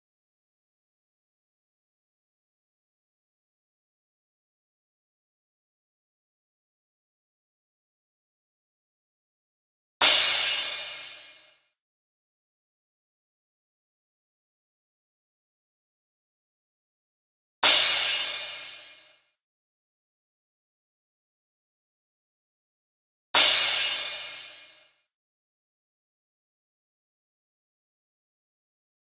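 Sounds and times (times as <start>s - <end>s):
future house crash cymbals: 10.0s - 11.6s, 17.6s - 19.2s, 23.4s - 25.0s.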